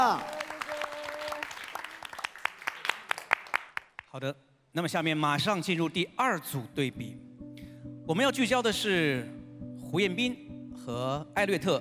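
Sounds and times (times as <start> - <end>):
audience applause: 0.0 - 4.0
speech: 4.2 - 7.3, 8.1 - 11.8.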